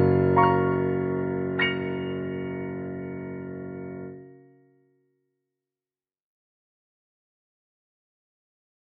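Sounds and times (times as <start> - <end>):
piano with reverb: 0.0 - 4.7.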